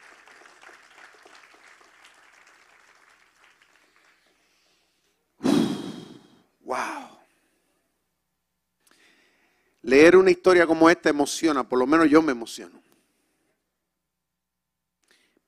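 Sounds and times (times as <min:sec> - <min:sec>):
audience applause: 0:00.0 - 0:04.5
breathy bursts into a microphone: 0:05.4 - 0:07.5
speech: 0:09.8 - 0:12.9.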